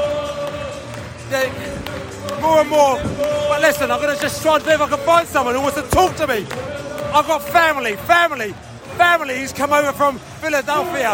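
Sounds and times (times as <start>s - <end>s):
football crowd singing in stadium: 0.0s - 11.1s
speech: 1.3s - 11.1s.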